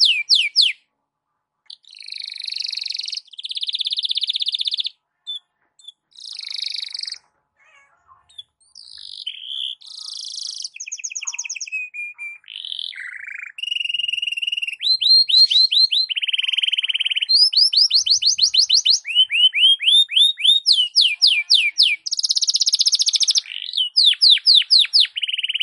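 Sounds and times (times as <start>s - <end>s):
Belgian canary singing: 0.0s - 0.9s, 1.6s - 25.6s.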